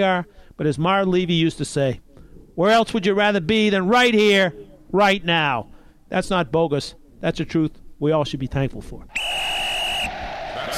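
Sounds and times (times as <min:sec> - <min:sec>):
speech: 0:00.0 - 0:02.0, 0:02.6 - 0:09.2
whistle: 0:09.1 - 0:10.3.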